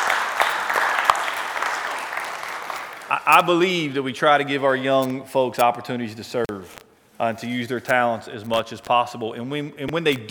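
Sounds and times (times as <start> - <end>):
audience applause: 0.0 - 3.3
speech: 3.2 - 10.2.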